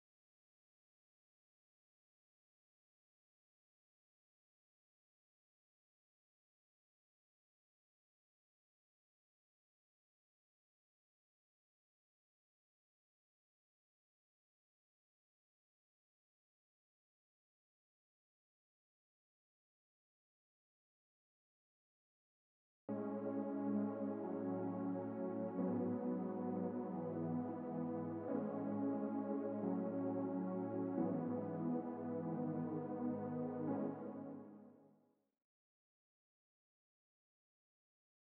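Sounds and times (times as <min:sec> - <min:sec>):
synth pad: 0:22.9 - 0:34.6.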